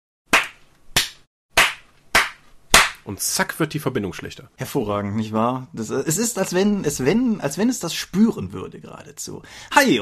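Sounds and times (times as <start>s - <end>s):
hand clapping: 0.3s - 3.0s
speech: 3.1s - 10.0s.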